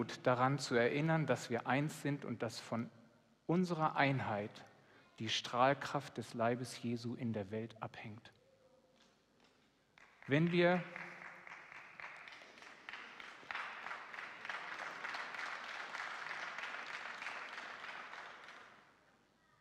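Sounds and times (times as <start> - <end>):
speech: 0.0 - 8.4, 10.3 - 11.1
audience applause: 10.0 - 18.8.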